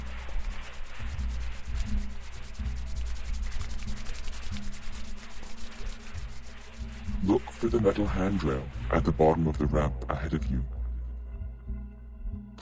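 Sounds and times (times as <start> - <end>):
hands rubbing quickly together: 0.0 - 9.2
speech: 7.3 - 10.8.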